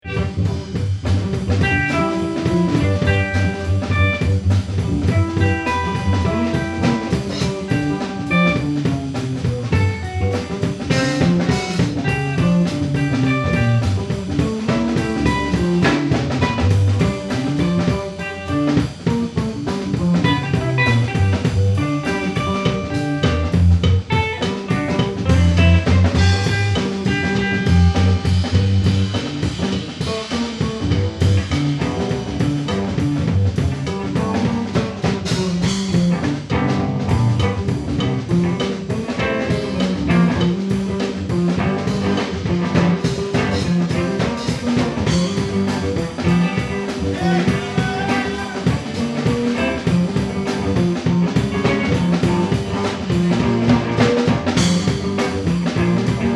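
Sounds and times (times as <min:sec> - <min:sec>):
killer bass: 0:00.0 - 0:56.3.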